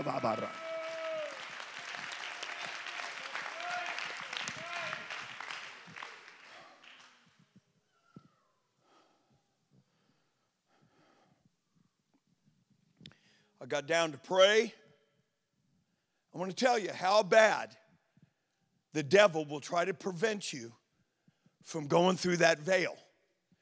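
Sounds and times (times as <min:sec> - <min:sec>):
speech: 0:00.0 - 0:00.7, 0:13.7 - 0:14.8, 0:16.4 - 0:17.8, 0:18.9 - 0:20.8, 0:21.6 - 0:23.0
audience clapping hands: 0:00.0 - 0:07.4.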